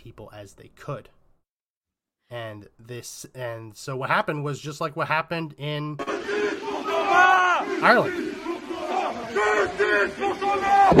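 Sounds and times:
speech: 0:00.0 - 0:01.2, 0:02.3 - 0:08.4, 0:09.3 - 0:10.9
protest crowd shouting slogans in the streets: 0:06.0 - 0:10.9.

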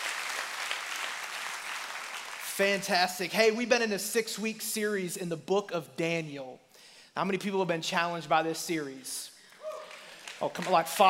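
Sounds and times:
church audience applause: 0:00.0 - 0:02.8, 0:09.5 - 0:11.0
speech: 0:02.6 - 0:06.6, 0:07.2 - 0:09.3, 0:10.4 - 0:11.0.

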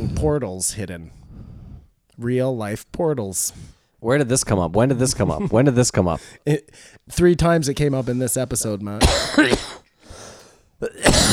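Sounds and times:
speech: 0:00.2 - 0:01.2, 0:02.2 - 0:09.8, 0:10.8 - 0:11.3
raspy wheezing breath: 0:01.1 - 0:02.0, 0:06.2 - 0:07.1, 0:09.9 - 0:10.8
harsh cough: 0:09.0 - 0:11.3.

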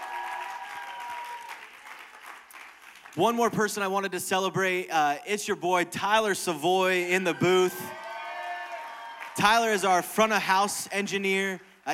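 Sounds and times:
audience applause: 0:00.0 - 0:03.2, 0:07.2 - 0:10.0
speech: 0:03.2 - 0:08.0, 0:09.4 - 0:11.9.

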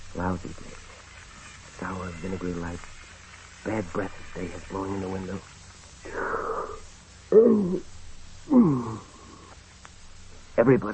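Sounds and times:
speech: 0:00.1 - 0:00.9, 0:01.8 - 0:03.0, 0:03.6 - 0:06.4, 0:07.3 - 0:08.0, 0:10.6 - 0:10.9
person long drawn-out yawn: 0:06.0 - 0:07.9, 0:08.5 - 0:09.6.

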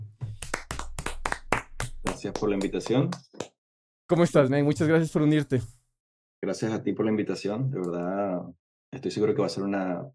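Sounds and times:
applause: 0:00.3 - 0:03.5
speech: 0:02.2 - 0:03.3, 0:04.1 - 0:05.8, 0:06.4 - 0:10.1.

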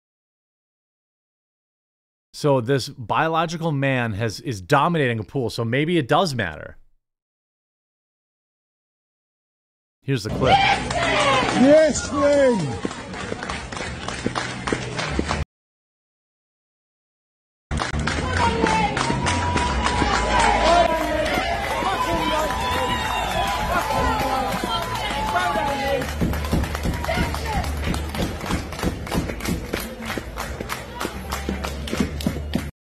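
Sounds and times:
speech: 0:02.3 - 0:06.8, 0:10.0 - 0:13.0
crowd cheering at a swimming pool: 0:10.2 - 0:15.4, 0:17.7 - 0:32.7.

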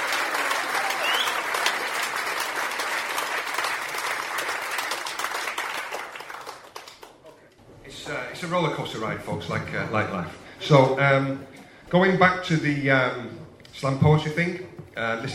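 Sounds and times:
audience applause: 0:00.0 - 0:07.3
speech: 0:08.4 - 0:15.3.

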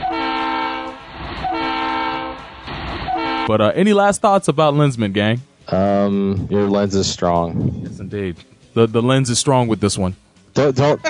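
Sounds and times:
train horn toots: 0:00.0 - 0:03.7
speech: 0:03.5 - 0:11.0.

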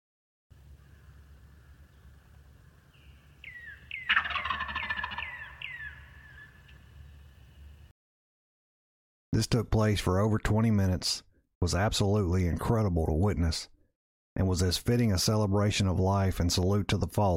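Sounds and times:
wild turkey gobbling: 0:00.8 - 0:07.2
speech: 0:09.4 - 0:13.7, 0:14.4 - 0:17.3.

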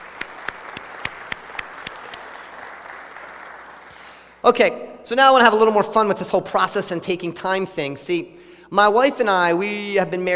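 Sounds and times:
church audience applause: 0:00.0 - 0:04.3
speech: 0:04.5 - 0:10.3.

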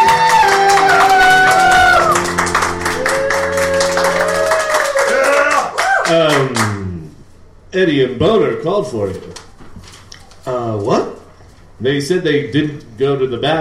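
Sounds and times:
studio audience applause: 0:00.0 - 0:06.8
speech: 0:07.8 - 0:09.4, 0:11.8 - 0:13.5.

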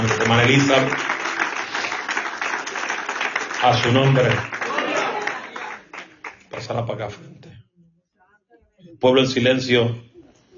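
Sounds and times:
speech: 0:00.0 - 0:01.1, 0:03.6 - 0:04.6, 0:06.5 - 0:07.4, 0:09.0 - 0:10.1
audience applauding: 0:00.0 - 0:06.6.

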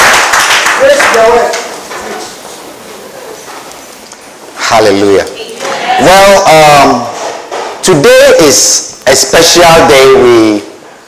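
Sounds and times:
audience clapping: 0:00.0 - 0:02.4
speech: 0:01.2 - 0:01.6, 0:04.7 - 0:05.4, 0:06.0 - 0:07.1, 0:07.8 - 0:10.7.

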